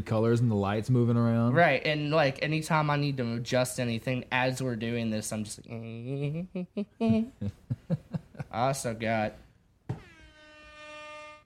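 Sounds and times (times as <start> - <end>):
speech: 0.0 - 9.4
air horn blast: 10.0 - 11.4.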